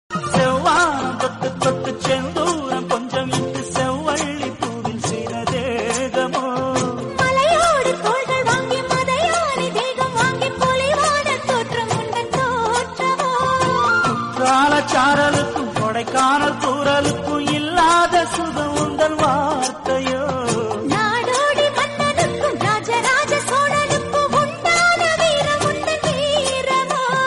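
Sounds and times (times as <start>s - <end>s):
Tamil song: 0.1s - 27.2s.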